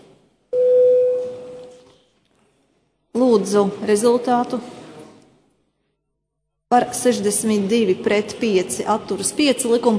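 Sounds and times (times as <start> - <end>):
parliament voting bell electronic tone: 0.6 - 1.8
speech: 3.2 - 4.8, 6.7 - 9.9.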